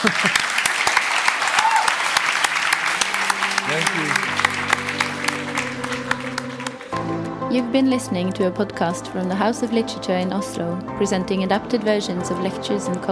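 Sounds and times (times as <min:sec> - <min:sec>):
speech: 0:00.0 - 0:00.5, 0:03.7 - 0:04.5, 0:07.5 - 0:13.0
laughter: 0:00.0 - 0:00.8, 0:02.8 - 0:05.6
audience clapping: 0:00.0 - 0:07.4.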